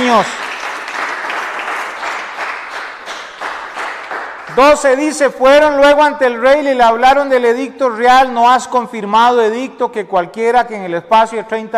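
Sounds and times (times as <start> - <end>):
audience applause: 0.0 - 4.6
speech: 0.1 - 0.5, 4.6 - 11.7.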